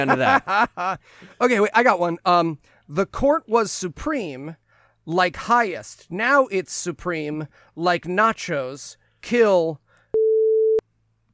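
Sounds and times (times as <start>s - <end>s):
laughter: 0.0s - 1.4s
speech: 0.0s - 9.8s
censor beep over a word: 10.2s - 10.8s.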